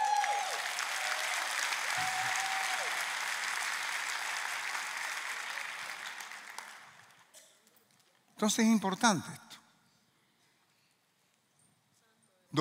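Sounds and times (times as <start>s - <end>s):
applause: 0.0s - 7.3s
speech: 8.4s - 9.5s.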